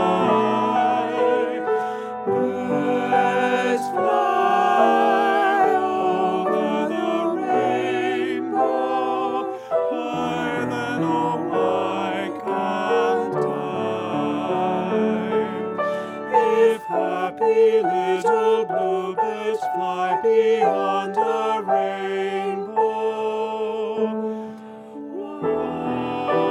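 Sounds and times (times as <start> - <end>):
piano accompaniment for an SAB arrangement: 0.0 - 26.5.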